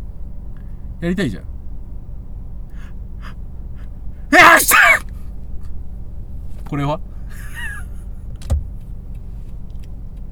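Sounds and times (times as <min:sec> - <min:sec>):
speech: 0:01.0 - 0:01.5, 0:06.7 - 0:07.5
fake sneeze sounding like a big exhale: 0:04.3 - 0:05.0
laughter: 0:07.4 - 0:08.0.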